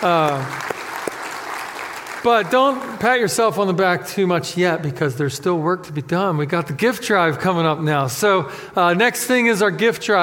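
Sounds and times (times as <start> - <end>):
speech: 0.0 - 0.6, 2.2 - 10.2
crowd applauding: 0.0 - 3.1.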